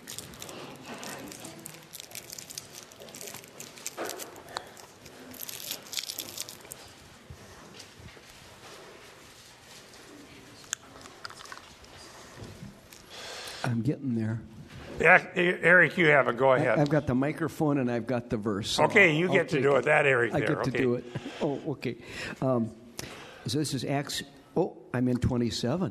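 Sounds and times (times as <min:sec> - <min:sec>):
cough drop wrapper crinkling as it is unwrapped: 0:00.0 - 0:07.2, 0:10.6 - 0:13.2
speech: 0:13.7 - 0:22.8, 0:23.5 - 0:25.8.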